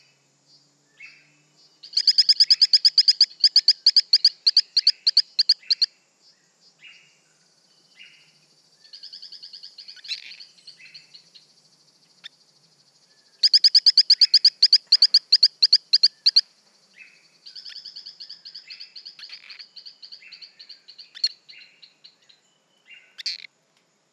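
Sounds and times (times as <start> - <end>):
Torrent frog Hylodes phyllodes chirping: 1.8 - 6.0, 8.0 - 11.5, 13.4 - 22.2, 22.9 - 23.5.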